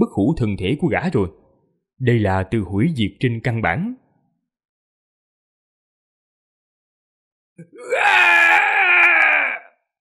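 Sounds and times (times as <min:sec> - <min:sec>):
speech: 0:00.1 - 0:01.4, 0:02.0 - 0:04.0
man wailing in pain: 0:07.6 - 0:09.8.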